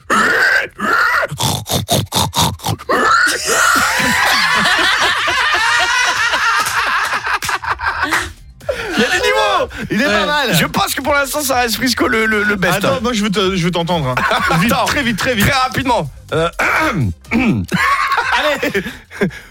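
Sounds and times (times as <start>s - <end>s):
person imitating a pig squeal: 0.0s - 4.2s, 11.9s - 13.0s
laughter: 3.4s - 10.8s, 11.8s - 13.3s, 14.0s - 15.7s, 17.6s - 19.4s
speech: 10.1s - 17.9s, 18.5s - 19.4s.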